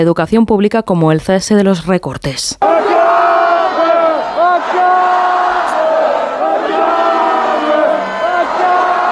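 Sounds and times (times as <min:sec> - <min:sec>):
speech: 0:00.0 - 0:02.7
student protester crowd chanting and shouting in a street: 0:02.6 - 0:09.1.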